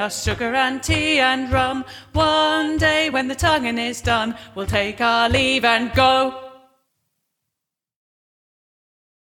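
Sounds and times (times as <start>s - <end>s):
voice with verse harmony: 0.0s - 6.6s.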